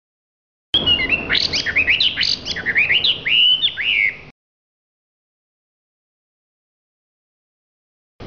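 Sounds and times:
hwamei song in full song: 0.8 - 4.3.

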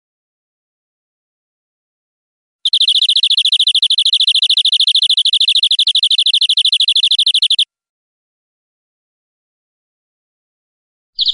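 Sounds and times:
European greenfinch buzzy trill: 2.6 - 7.6, 11.2 - 11.3.

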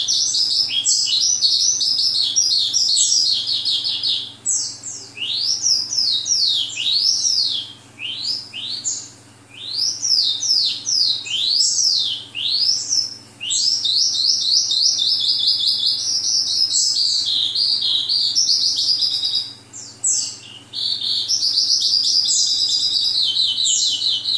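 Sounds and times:
oriental skylark singing in Vietnam: 0.0 - 24.3.

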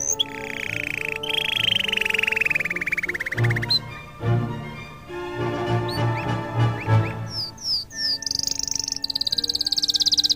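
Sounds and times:
canary trilling: 0.0 - 10.3
music humming: 0.0 - 10.3.

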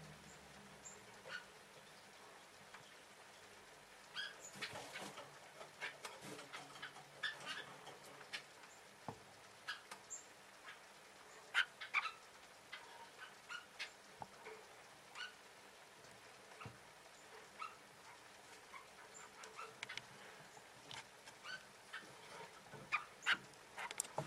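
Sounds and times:
shafttail finch: 0.3 - 1.9, 4.1 - 8.8, 9.6 - 14.6, 15.2 - 15.4, 16.6 - 24.1.

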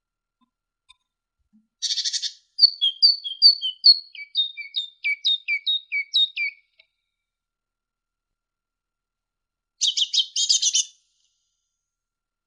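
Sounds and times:
great tit singing: 1.8 - 6.8, 9.8 - 11.0.

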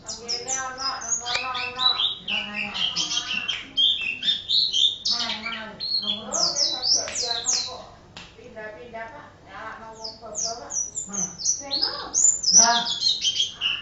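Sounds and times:
white-eye singing an excited song: 0.0 - 13.8.

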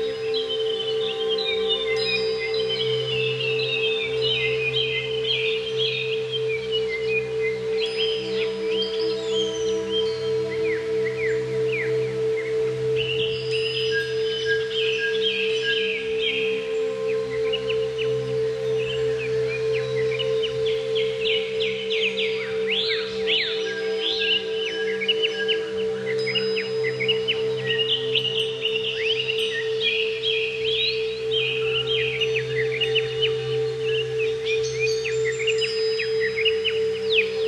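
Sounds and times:
greater green leafbird song: 0.0 - 37.4.

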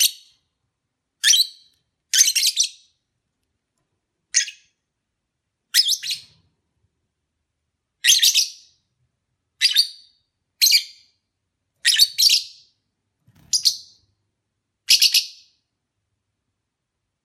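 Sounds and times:
lovebird chirps during courtship: 1.2 - 3.0, 4.3 - 4.8, 5.7 - 6.4, 8.0 - 8.8, 9.6 - 11.2, 11.8 - 12.7, 13.4 - 14.1, 14.9 - 15.6.

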